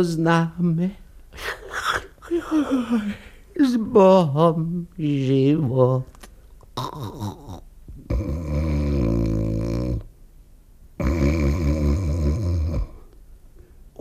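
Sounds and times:
speech: 0:00.0 - 0:01.6, 0:02.3 - 0:06.1, 0:06.8 - 0:07.6
man snoring while asleep: 0:06.8 - 0:10.1, 0:11.0 - 0:13.1.

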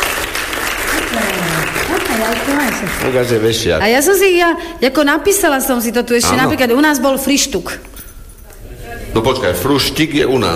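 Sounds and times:
audience applause for quiz game contestants: 0:00.0 - 0:03.7
speech: 0:02.2 - 0:08.0, 0:09.2 - 0:10.5.

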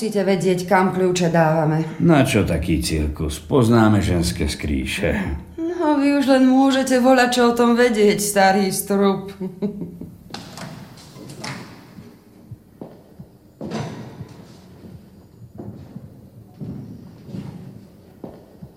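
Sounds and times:
speech: 0:00.0 - 0:10.1
low room background: 0:00.0 - 0:18.7
door slamming shut: 0:13.6 - 0:14.7.

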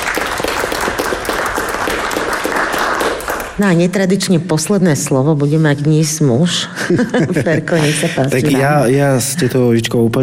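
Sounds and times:
audience applause: 0:00.0 - 0:03.6
speech: 0:03.6 - 0:10.2
laughter: 0:06.7 - 0:09.8.

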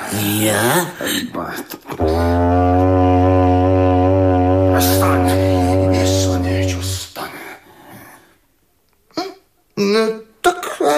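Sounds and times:
speech: 0:00.1 - 0:03.0
horn blown in a long low blast: 0:02.0 - 0:07.0.

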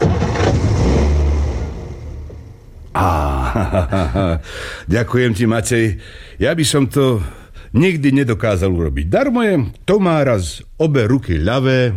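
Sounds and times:
car engine starting up and revving: 0:00.0 - 0:02.9
laughter: 0:03.0 - 0:04.7
speech: 0:03.6 - 0:11.9.

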